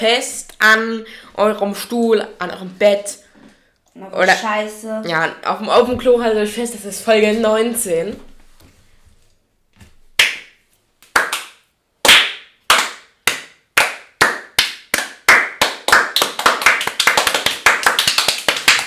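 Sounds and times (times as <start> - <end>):
speech: 0.0 - 3.2, 4.0 - 8.3
applause sound effect clapping: 10.2 - 18.8.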